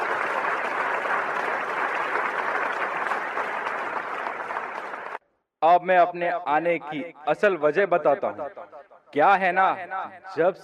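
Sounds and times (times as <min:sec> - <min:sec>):
audience applause: 0:00.0 - 0:05.2
speech: 0:05.6 - 0:10.6.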